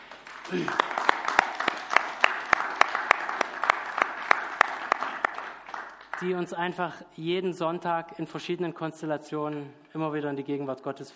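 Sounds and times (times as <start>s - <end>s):
applause: 0.0s - 6.4s
speech: 0.5s - 1.0s, 6.2s - 11.1s.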